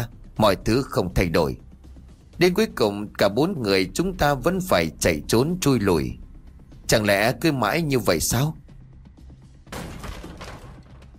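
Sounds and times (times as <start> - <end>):
speech: 0.0 - 1.6, 2.4 - 6.2, 6.9 - 8.6
door smashed open: 9.7 - 11.1.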